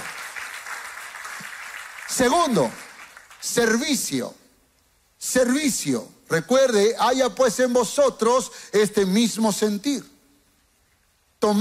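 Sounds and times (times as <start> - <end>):
audience applauding loudly: 0.0 - 3.8
speech: 2.1 - 2.8, 3.4 - 4.4, 5.2 - 10.1, 11.4 - 11.5.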